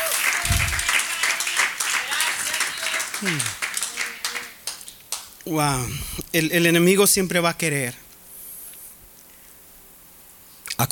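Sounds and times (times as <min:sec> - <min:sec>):
audience applause: 0:00.0 - 0:05.3
speech: 0:03.2 - 0:03.6, 0:05.5 - 0:08.0.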